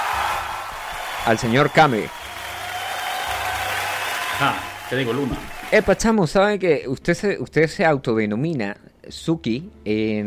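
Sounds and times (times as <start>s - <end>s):
audience applause: 0.0s - 6.0s
speech: 1.2s - 2.2s, 4.4s - 10.2s.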